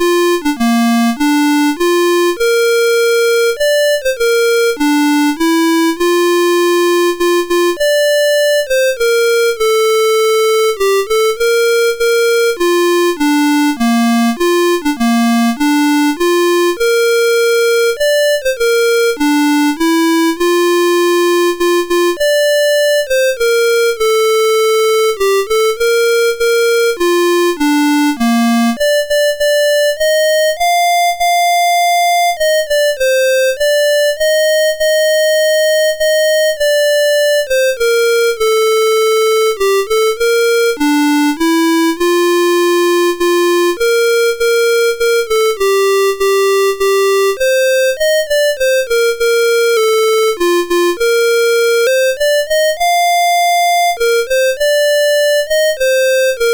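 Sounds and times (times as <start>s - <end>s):
anthem on MOS6581R3 sound chip: 0.0s - 56.5s.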